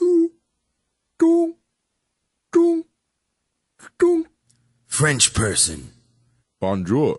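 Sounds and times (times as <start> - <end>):
voice imitating submarine sonar pings: 0.0 - 0.4, 2.6 - 2.9
speech: 5.0 - 6.0, 6.6 - 7.1.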